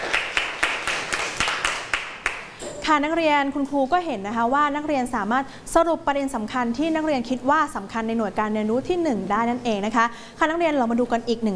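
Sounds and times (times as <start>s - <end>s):
students in a classroom clapping for a classmate: 0.0s - 2.6s
speech: 2.9s - 11.5s.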